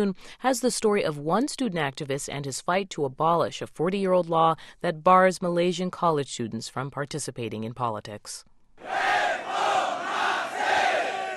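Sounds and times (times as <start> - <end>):
speech: 0.0 - 9.0
crowd of thousands chanting reform slogan outside Malaysia's high court: 8.8 - 11.3.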